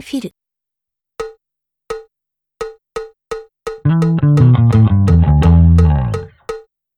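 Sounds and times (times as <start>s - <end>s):
bass infill: 3.9s - 6.4s.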